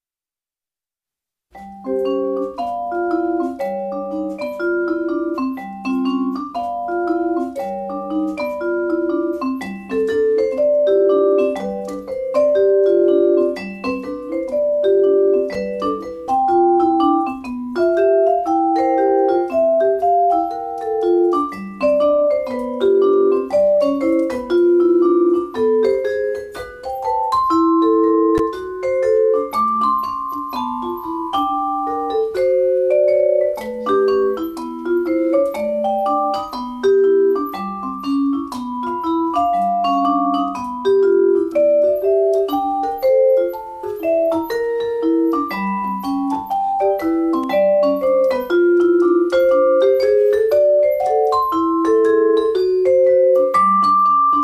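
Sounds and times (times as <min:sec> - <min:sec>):
jazz boogie music: 0:01.6 - 0:54.4.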